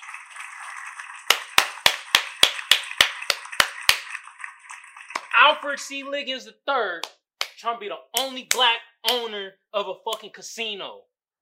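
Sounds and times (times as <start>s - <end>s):
sharp hand claps: 1.3s - 4.2s, 5.1s - 5.3s, 7.0s - 7.6s, 8.2s - 9.4s, 10.1s - 10.3s
speech: 5.4s - 11.1s.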